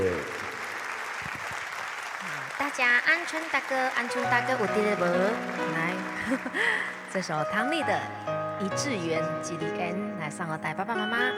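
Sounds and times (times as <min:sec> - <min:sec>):
soft audience applause after a song: 0:00.0 - 0:07.3
speech: 0:02.7 - 0:11.3.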